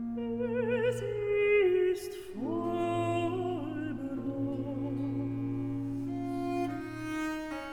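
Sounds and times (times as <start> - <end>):
alto voice singing: 0.1 - 7.4.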